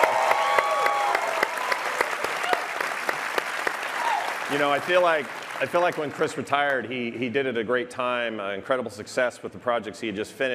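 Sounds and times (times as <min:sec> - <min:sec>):
audience applause: 0:00.0 - 0:06.8
speech: 0:04.5 - 0:10.5.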